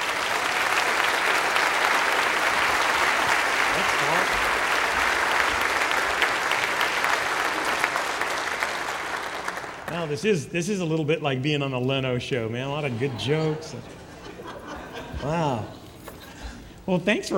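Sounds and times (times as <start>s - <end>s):
audience applause welcoming a guest speaker at a church gathering: 0.0s - 10.5s
speech: 10.1s - 14.0s, 15.2s - 15.8s, 16.9s - 17.3s
laughter: 12.6s - 16.7s.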